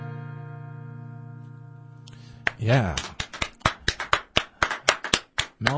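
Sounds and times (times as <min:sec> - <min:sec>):
person clapping hands: 0:02.1 - 0:05.7
speech: 0:02.6 - 0:03.1.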